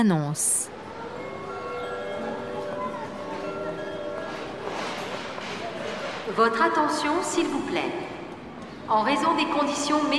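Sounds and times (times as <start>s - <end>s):
speech: 0.0s - 0.8s, 6.3s - 8.1s, 8.9s - 10.1s
rail traffic rumble at Rouen train station: 0.3s - 10.1s.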